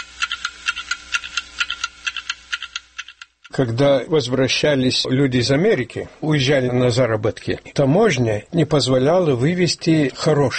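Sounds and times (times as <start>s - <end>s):
clocks ticking: 0.0s - 3.6s
speech: 3.6s - 10.5s.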